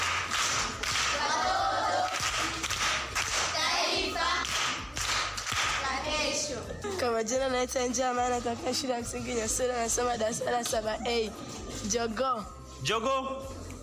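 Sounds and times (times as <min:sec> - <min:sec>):
audience clapping at a lively gathering: 0:00.0 - 0:06.0
speech: 0:07.2 - 0:13.5.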